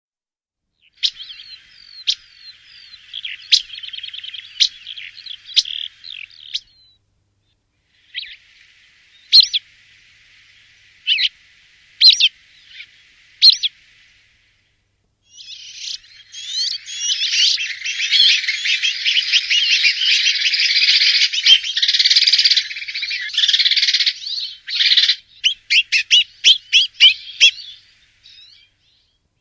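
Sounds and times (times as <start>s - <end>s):
bird calls chirps clicks and twittering: 0.8s - 7.0s, 9.2s - 9.6s, 12.0s - 13.7s, 15.3s - 29.1s.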